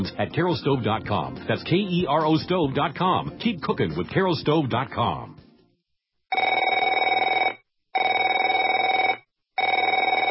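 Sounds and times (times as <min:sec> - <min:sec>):
speech: 0:00.0 - 0:05.4
telephone ringing: 0:06.3 - 0:10.3.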